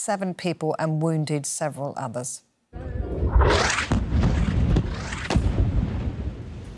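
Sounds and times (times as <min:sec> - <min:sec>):
speech: 0:00.0 - 0:03.8
Israeli airstrike explosion on a desalination plant in Gaza: 0:02.8 - 0:06.7
sharp cracks: 0:03.3 - 0:06.0.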